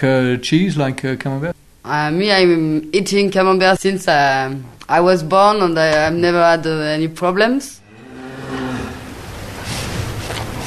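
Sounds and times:
speech: 0.0s - 7.8s
outdoor noise: 1.5s - 10.6s
cow mooing: 7.8s - 9.4s.

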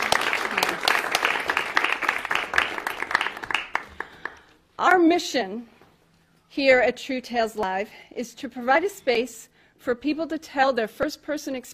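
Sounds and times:
studio audience applause at a live storytelling TV show in Portsmouth, New Hampshire: 0.0s - 4.5s
speech: 4.8s - 5.8s, 6.5s - 11.7s.

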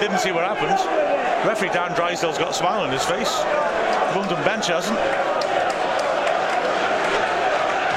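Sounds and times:
speech: 0.0s - 5.6s
stadium crowd of agitated fans roaring: 0.0s - 7.9s.

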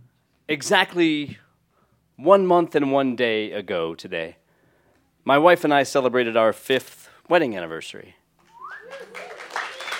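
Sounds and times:
speech: 0.5s - 1.4s, 2.2s - 4.4s, 5.2s - 8.2s
audience applause: 8.5s - 9.9s
people cheering: 8.5s - 9.9s
whistle-like whoop: 8.5s - 9.9s.

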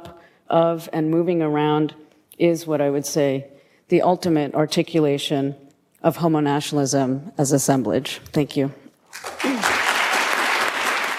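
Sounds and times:
speech: 0.5s - 9.3s
applause in a barbershop: 9.1s - 11.1s.

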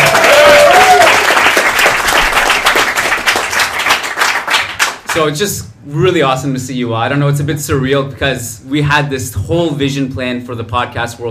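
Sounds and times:
live audience round of applause: 0.0s - 5.2s
speech: 5.2s - 11.2s.

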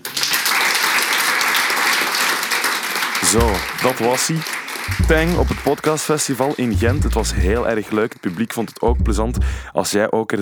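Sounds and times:
live audience applause: 0.0s - 4.9s
speech: 3.3s - 10.3s.

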